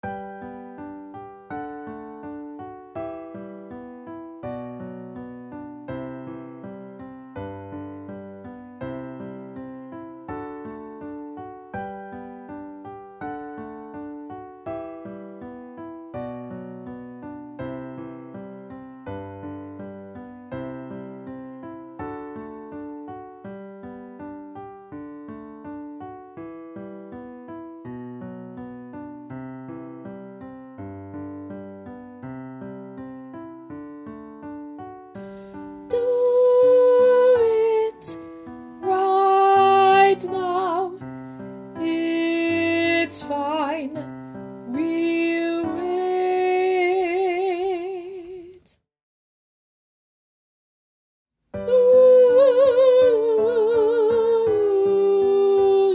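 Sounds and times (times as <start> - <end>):
soprano singing: 35.4 - 48.8, 51.6 - 55.9.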